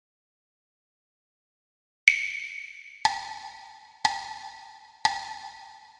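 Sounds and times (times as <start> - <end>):
musical dictation for ear training: 2.1 - 5.6.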